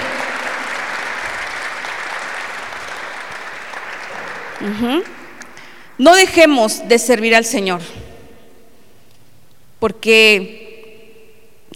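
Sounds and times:
loud audience applause: 0:00.0 - 0:05.9
speech: 0:04.6 - 0:05.2, 0:06.0 - 0:08.0, 0:09.8 - 0:10.6.

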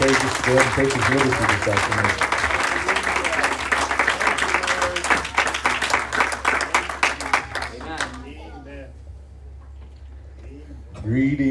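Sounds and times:
audience clapping: 0:00.0 - 0:08.3
speech: 0:00.5 - 0:02.3.

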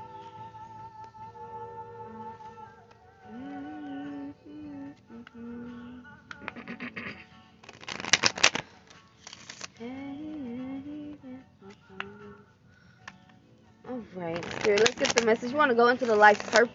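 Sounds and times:
playing cards shuffled for a card reading: 0:07.6 - 0:10.5, 0:14.3 - 0:16.7
speech: 0:14.1 - 0:16.7.

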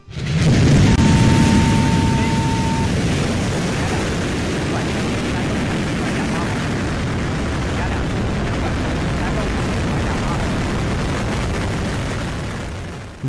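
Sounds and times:
Long March 7 rocket launch from Wenchang: 0:00.0 - 0:13.2.

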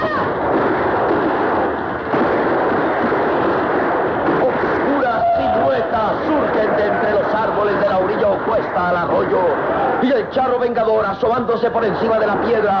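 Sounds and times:
people shouting: 0:00.0 - 0:00.7, 0:04.4 - 0:07.4, 0:09.6 - 0:10.0
rapid gunfire from two pistols: 0:00.0 - 0:12.7
speech: 0:09.2 - 0:12.7.

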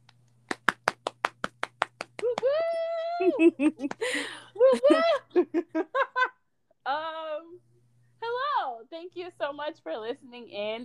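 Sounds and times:
hand clapping: 0:00.0 - 0:05.1
laughter: 0:02.5 - 0:06.3
speech: 0:03.2 - 0:06.1, 0:08.9 - 0:10.8.

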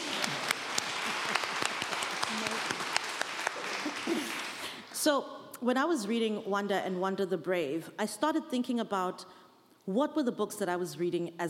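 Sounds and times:
audience clapping: 0:00.0 - 0:05.0
speech: 0:05.0 - 0:11.4.

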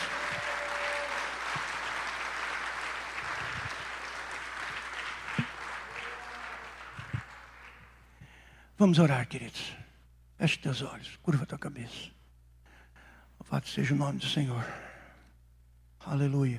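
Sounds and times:
audience applauding: 0:00.0 - 0:08.0
speech: 0:08.8 - 0:09.8, 0:10.4 - 0:12.2, 0:13.5 - 0:14.8, 0:16.0 - 0:16.5.

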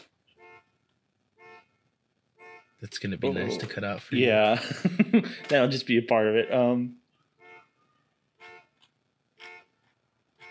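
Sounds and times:
car alarm going off outside: 0:00.3 - 0:00.8, 0:01.4 - 0:01.8, 0:02.4 - 0:02.8, 0:07.4 - 0:08.8
speech: 0:02.8 - 0:07.0
laughter: 0:03.2 - 0:05.6.

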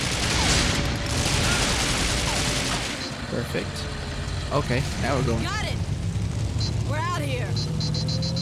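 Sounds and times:
rapid gunfire in a video game: 0:00.0 - 0:03.1
speech: 0:03.4 - 0:05.8, 0:06.6 - 0:08.3.

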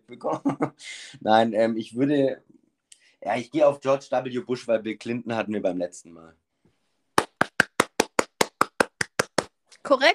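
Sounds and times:
laughter: 0:00.1 - 0:01.0
speech: 0:00.1 - 0:02.5, 0:03.2 - 0:06.4, 0:09.9 - 0:10.1
applause, hands clapping: 0:07.2 - 0:09.6.

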